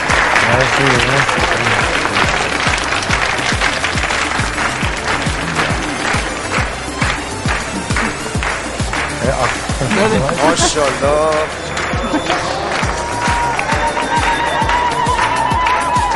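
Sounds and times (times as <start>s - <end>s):
wedding guests clapping in rhythm to welcome the groom: 0.0s - 16.1s
speech: 0.6s - 2.0s, 9.4s - 12.6s
laughter: 7.5s - 8.6s, 9.3s - 15.3s.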